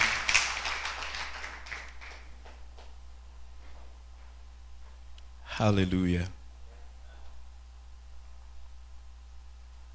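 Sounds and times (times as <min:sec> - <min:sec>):
audience hand clapping: 0:00.0 - 0:02.9
speech: 0:05.6 - 0:06.4.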